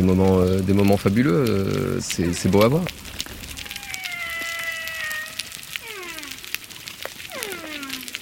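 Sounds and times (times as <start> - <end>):
speech: 0.0 - 3.2
crackling hissy underwater background: 0.0 - 8.2
humpback whale song underwater: 3.6 - 6.6, 7.2 - 8.2.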